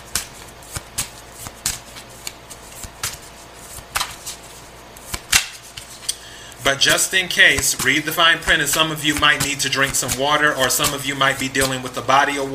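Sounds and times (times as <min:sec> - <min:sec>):
tarot cards being shuffled: 0:00.0 - 0:06.1, 0:06.9 - 0:12.0
speech: 0:06.7 - 0:12.5.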